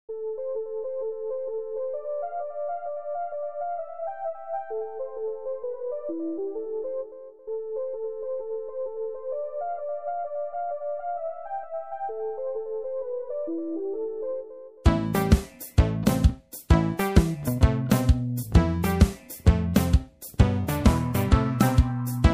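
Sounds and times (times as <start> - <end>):
beat: 14.9 - 22.3.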